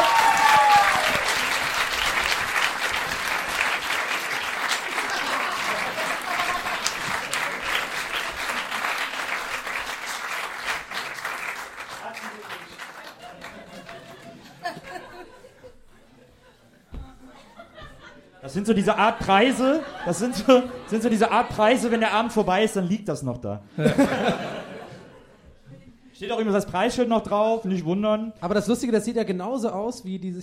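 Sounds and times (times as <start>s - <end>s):
audience applause: 0.0s - 14.9s
scattered audience laughter: 4.8s - 9.7s, 13.0s - 22.2s, 23.8s - 25.9s
speech: 18.6s - 24.5s, 26.3s - 30.4s.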